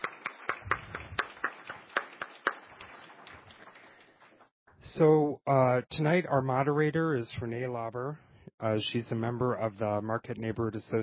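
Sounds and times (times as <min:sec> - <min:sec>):
round of applause: 0:00.0 - 0:04.5
speech: 0:05.0 - 0:11.0.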